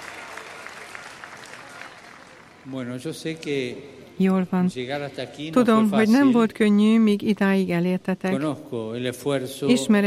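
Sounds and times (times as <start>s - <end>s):
audience applause: 0.0s - 2.6s
speech: 2.6s - 10.0s.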